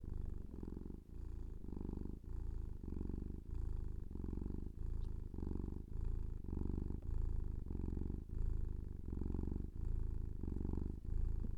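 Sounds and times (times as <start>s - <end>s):
cat purring in a low continuous rumble: 0.0s - 11.5s.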